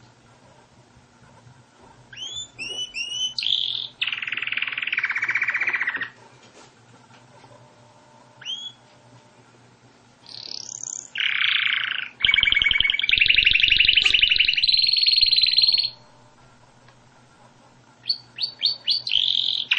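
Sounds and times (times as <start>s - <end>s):
canary song: 2.1s - 6.2s, 8.4s - 8.8s, 10.2s - 16.3s, 18.0s - 19.7s.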